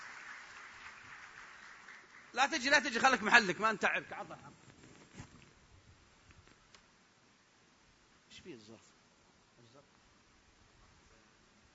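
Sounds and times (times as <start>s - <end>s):
audience applause: 0.0s - 3.4s
speech: 2.3s - 4.7s, 8.4s - 8.9s.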